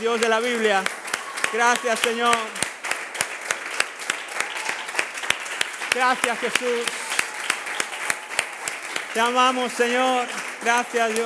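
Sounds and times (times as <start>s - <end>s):
speech: 0.0s - 2.6s, 6.0s - 7.0s, 9.2s - 11.2s
loud applause: 0.0s - 11.2s.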